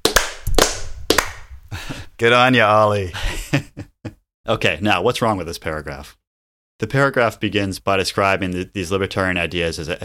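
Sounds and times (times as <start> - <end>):
sharp hand claps: 0.0 - 1.5
speech: 2.2 - 3.4, 4.5 - 6.2, 6.8 - 10.0.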